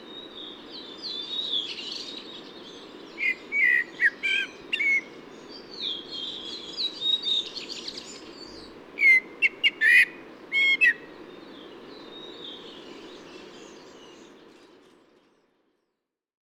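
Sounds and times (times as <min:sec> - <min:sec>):
Eurasian blackbird singing at a camp in Ísafjörður: 0:00.0 - 0:16.0.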